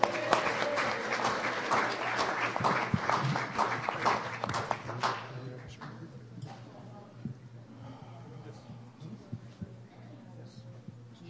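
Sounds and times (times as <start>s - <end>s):
round of applause: 0.0s - 6.0s.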